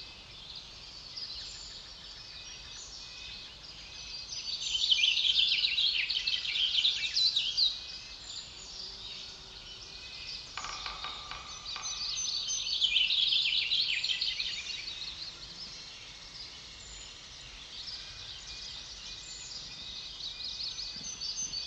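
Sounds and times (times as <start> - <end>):
coniferous forest ambience: 0.0 - 21.6.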